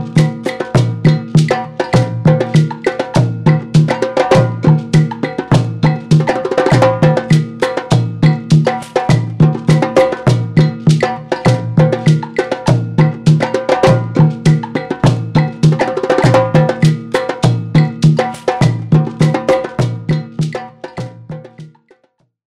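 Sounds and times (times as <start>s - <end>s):
clave playing two-three clave timeline: 0.0s - 22.0s
dundun drum playing traditional Ghana rhythm: 0.0s - 22.0s
shaker: 0.0s - 22.1s
agogo bell: 0.0s - 22.2s.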